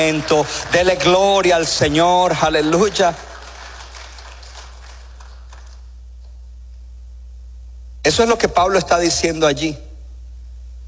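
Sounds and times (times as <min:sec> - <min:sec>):
speech: 0:00.0 - 0:03.3, 0:08.1 - 0:09.8
audience applause: 0:00.0 - 0:05.9.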